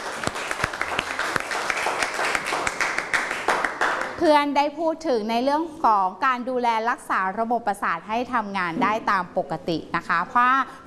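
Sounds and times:
audience applause: 0.0s - 4.2s
speech: 4.2s - 10.8s.

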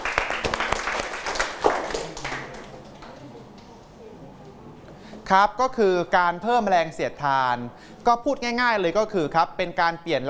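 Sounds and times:
classroom applause: 0.0s - 3.2s
speech: 5.3s - 10.2s.

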